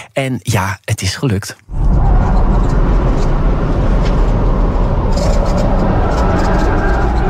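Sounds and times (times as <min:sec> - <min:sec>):
speech: 0:00.2 - 0:01.9
Tesla Model S Plaid racing through track corners: 0:01.7 - 0:07.2.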